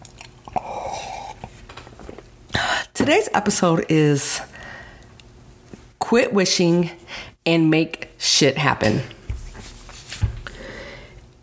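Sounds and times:
person with a raspy throat slurping tea: 0.4 - 1.6
speech: 3.1 - 4.5, 6.1 - 9.2.

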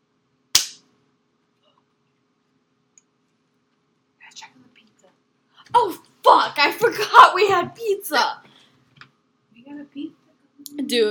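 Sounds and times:
hand clap: 0.6 - 0.8
speech: 6.8 - 8.4, 10.0 - 11.0.

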